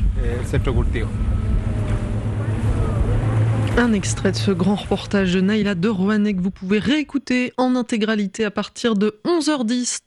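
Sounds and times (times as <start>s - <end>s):
motorboat engine on the water: 0.0s - 6.1s
speech: 0.4s - 1.5s, 3.8s - 10.0s.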